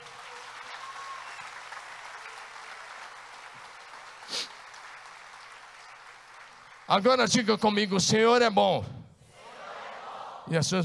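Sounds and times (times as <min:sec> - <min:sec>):
sharp clap or shout: 0:00.0 - 0:05.0
audience applause: 0:00.0 - 0:07.3
speech: 0:06.9 - 0:09.0, 0:10.5 - 0:10.8.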